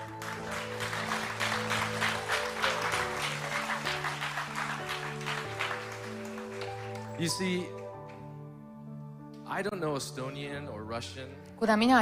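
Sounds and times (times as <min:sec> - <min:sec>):
audience applause: 0:00.0 - 0:07.6
speech: 0:07.2 - 0:07.8, 0:09.6 - 0:12.0.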